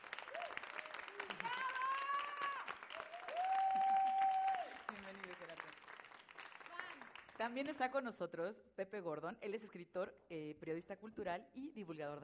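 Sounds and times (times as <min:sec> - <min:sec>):
audience applause: 0:00.0 - 0:07.4
speech: 0:07.4 - 0:12.2.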